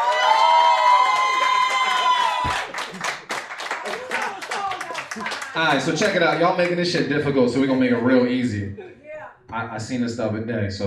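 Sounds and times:
crowd cheering and whooping: 0.0s - 5.8s
dense rapid crowd clapping: 0.0s - 8.2s
speech: 5.6s - 10.8s.

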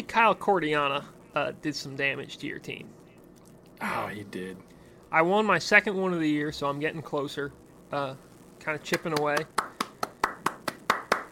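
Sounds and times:
speech: 0.1s - 3.0s, 3.8s - 9.6s
single person hand claps: 8.9s - 11.3s.

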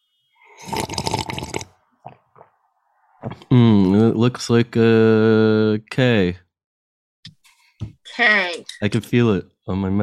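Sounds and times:
slurping alphabet soup: 0.5s - 4.0s
speech: 3.5s - 6.4s, 8.2s - 10.0s.

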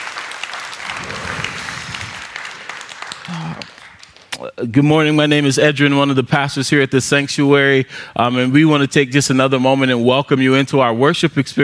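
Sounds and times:
round of applause: 0.0s - 4.5s
speech: 4.4s - 11.6s.

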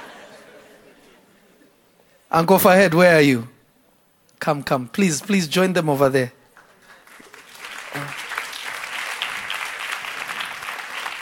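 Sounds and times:
speech: 2.3s - 3.5s, 4.4s - 6.4s
crowd clapping: 6.5s - 11.2s.

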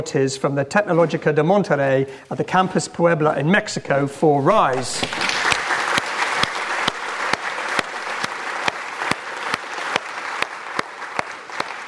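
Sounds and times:
speech: 0.0s - 5.5s
audience applause: 4.7s - 11.8s.

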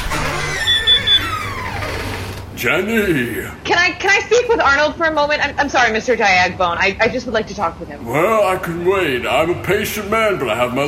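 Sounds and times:
garage door opening: 0.0s - 2.6s
speech: 2.6s - 10.8s.

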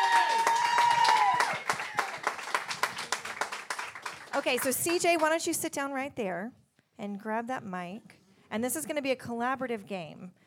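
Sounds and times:
sustained whistle or cheer: 0.0s - 2.2s
audience applause: 0.0s - 5.0s
speech: 4.4s - 10.4s.

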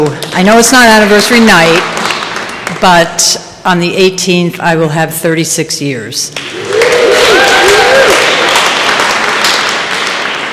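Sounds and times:
speech: 0.0s - 1.9s, 2.8s - 6.7s
crowd applause: 1.6s - 2.8s, 6.4s - 10.5s
high cheering voices: 6.4s - 10.5s.

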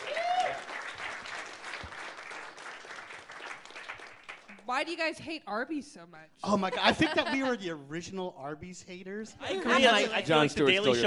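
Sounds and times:
audience applause: 0.0s - 4.7s
speech: 4.7s - 11.0s
laughter: 6.4s - 7.7s.

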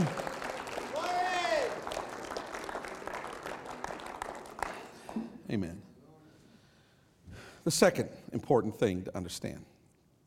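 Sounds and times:
audience clapping hands: 0.0s - 5.3s
speech: 5.5s - 5.9s, 7.6s - 9.7s.

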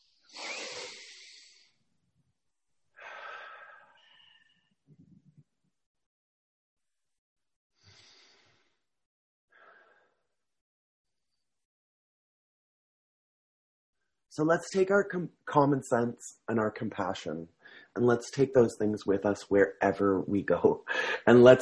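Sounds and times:
deep breaths drawn in and let out together: 0.2s - 1.8s, 3.0s - 4.8s, 7.8s - 8.8s, 9.5s - 10.2s, 17.6s - 18.0s, 20.9s - 21.3s
speech: 14.4s - 21.6s.

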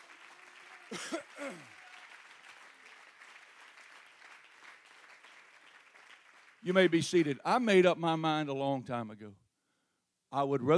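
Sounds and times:
audience clapping: 0.0s - 7.4s
speech: 0.9s - 1.8s, 6.6s - 9.4s, 10.3s - 10.7s.

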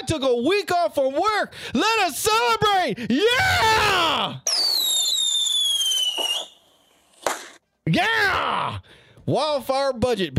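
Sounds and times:
speech: 0.1s - 4.8s, 7.9s - 10.3s
rocket fireworks sound effect whistle: 4.4s - 7.3s.

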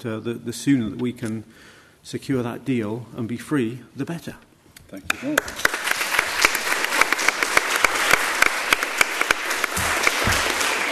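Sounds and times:
speech: 0.0s - 5.7s
audience applause: 5.1s - 10.9s.

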